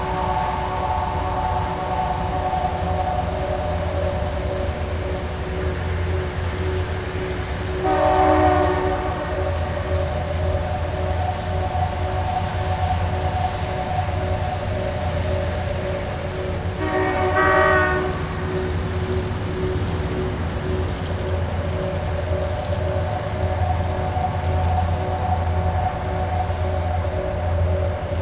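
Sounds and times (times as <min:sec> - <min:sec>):
rain whistle: 0:00.0 - 0:28.1.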